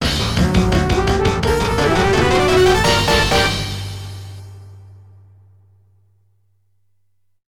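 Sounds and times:
game over music on MT-32 synthesizer: 0.4s - 4.3s.

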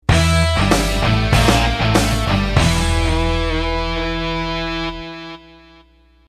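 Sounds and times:
defeat jingle: 0.1s - 5.1s.

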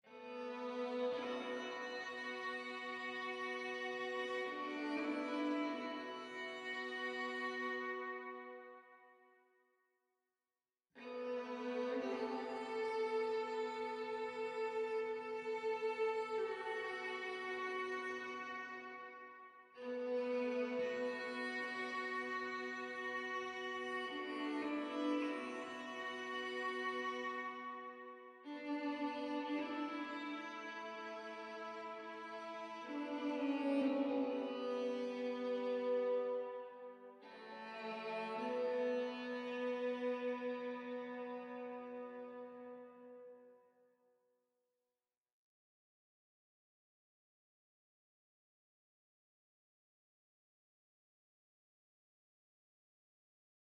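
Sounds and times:
violin: 0.0s - 9.3s, 11.0s - 43.6s.

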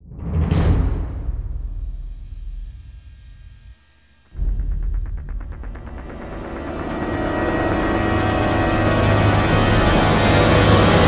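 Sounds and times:
drum roll: 0.1s - 11.0s
strings building: 4.2s - 11.0s.

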